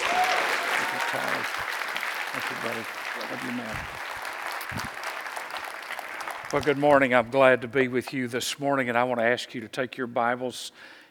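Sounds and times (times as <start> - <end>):
church audience applauding a guest preacher: 0.0 - 7.6
speech: 1.1 - 4.1, 4.7 - 5.0, 6.5 - 11.0.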